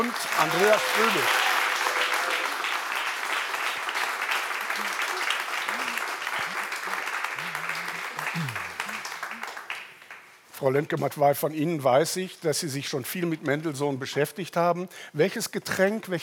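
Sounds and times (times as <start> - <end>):
speech: 0.0 - 1.5, 10.6 - 16.2
audience applause: 0.0 - 10.3.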